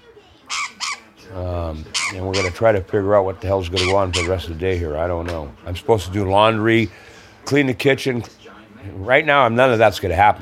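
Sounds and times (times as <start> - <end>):
pet bird squawking: 0.5 - 2.8, 3.6 - 4.5
speech: 1.3 - 10.3.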